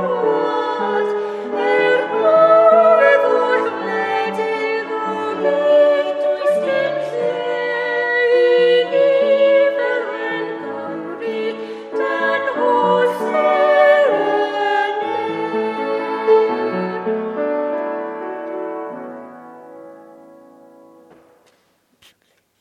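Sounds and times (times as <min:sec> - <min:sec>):
two people singing a duet: 0:00.0 - 0:17.2.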